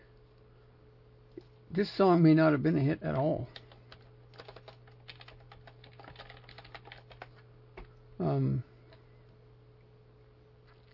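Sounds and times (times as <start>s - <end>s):
speech: 1.7s - 3.6s, 8.2s - 8.7s
typing on a computer keyboard: 3.2s - 7.4s.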